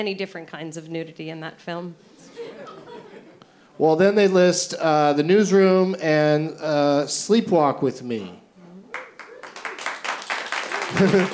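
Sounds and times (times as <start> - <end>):
speech: 0.0 - 2.8, 3.8 - 8.4, 10.9 - 11.3
laughter: 2.2 - 3.5, 10.6 - 11.3
audience applause: 8.9 - 11.3.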